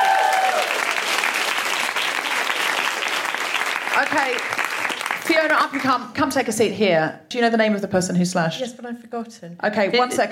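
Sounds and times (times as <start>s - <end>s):
audience applause: 0.0s - 5.6s
speech: 4.0s - 4.6s, 5.3s - 10.3s.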